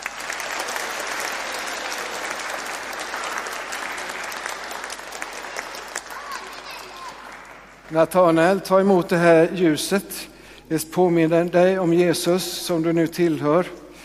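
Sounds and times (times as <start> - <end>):
welcoming applause in church: 0.0 - 8.0
speech: 7.9 - 13.8.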